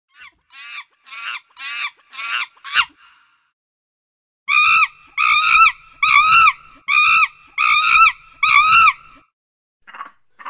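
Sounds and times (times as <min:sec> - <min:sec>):
monkeys calling: 0:00.1 - 0:03.0, 0:04.5 - 0:09.2.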